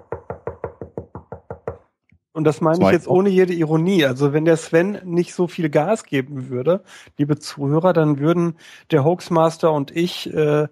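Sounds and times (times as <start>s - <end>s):
academic knocking on wooden table as applause: 0.0s - 1.9s
speech: 2.4s - 10.7s.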